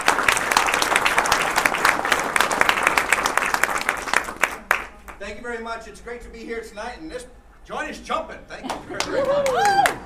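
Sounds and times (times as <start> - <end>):
audience applause: 0.0 - 5.0, 9.0 - 10.0
speech: 5.4 - 10.0.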